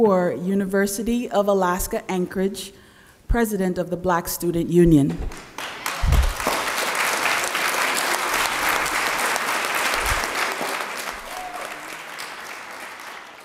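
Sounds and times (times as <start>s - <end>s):
speech: 0.0s - 5.7s
audience applause: 5.4s - 13.4s
low thumps: 6.0s - 6.5s.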